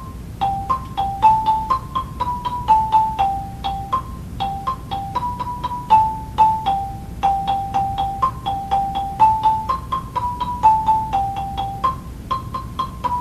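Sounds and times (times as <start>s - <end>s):
high lead marimba melody: 0.0s - 13.1s.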